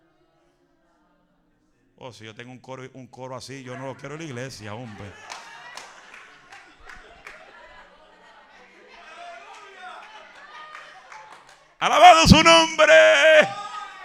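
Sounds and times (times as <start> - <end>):
speech: 2.0 - 5.4
audience clapping: 10.7 - 13.6.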